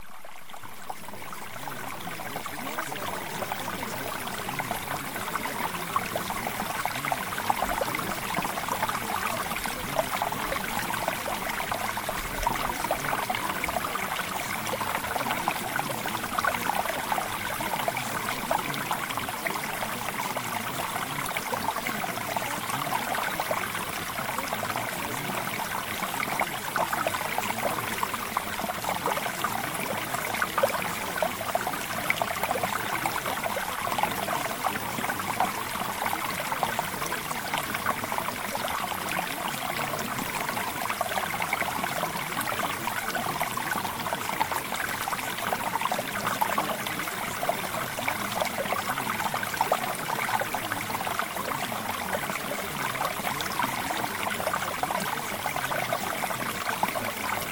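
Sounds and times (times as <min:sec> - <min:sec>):
mountain stream flowing: 0:00.0 - 0:57.5.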